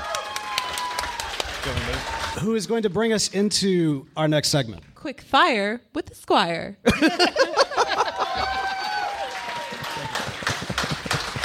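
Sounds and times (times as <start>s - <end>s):
audience applause: 0.0s - 2.5s, 7.8s - 11.4s
speech: 1.6s - 7.6s
laughter: 6.9s - 9.2s.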